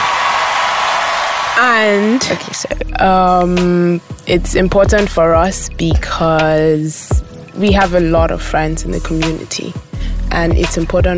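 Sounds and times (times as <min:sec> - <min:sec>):
applause from many hands: 0:00.0 - 0:02.7
speech: 0:01.6 - 0:11.1.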